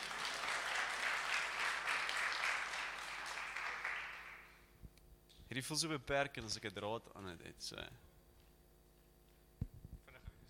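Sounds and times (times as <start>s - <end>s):
audience applause: 0.0s - 4.6s
speech: 5.5s - 8.1s.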